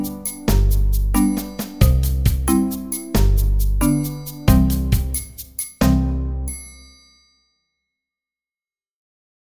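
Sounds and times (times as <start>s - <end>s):
dance music accompaniment at 90 bpm: 0.0s - 6.0s.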